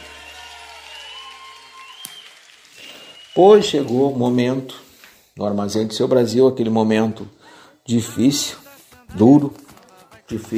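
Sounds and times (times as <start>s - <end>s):
audience applause: 0.0s - 4.1s
speech: 3.4s - 9.7s, 10.3s - 10.5s.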